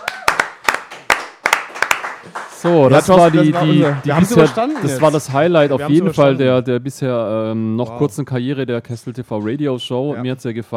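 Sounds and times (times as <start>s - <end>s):
audience clapping: 0.0s - 5.9s
speech: 2.6s - 10.7s.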